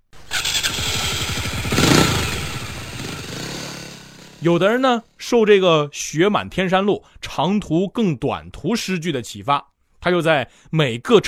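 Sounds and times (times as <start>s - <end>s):
motorcycle engine: 0.0s - 5.0s
speech: 4.4s - 11.2s.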